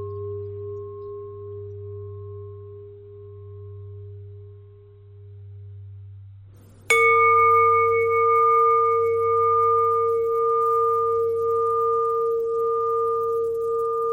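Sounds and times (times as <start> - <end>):
long bell ringing: 6.9 - 14.0.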